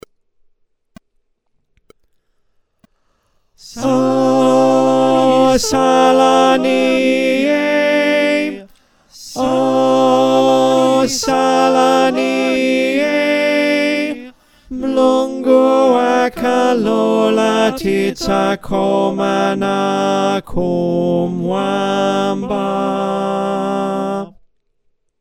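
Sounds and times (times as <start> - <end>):
tenor voice: 3.6 - 24.3
choir singing: 3.6 - 24.4.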